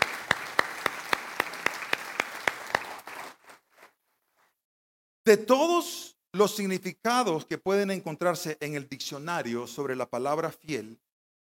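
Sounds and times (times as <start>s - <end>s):
audience applause: 0.0s - 3.9s
speech: 5.3s - 11.1s.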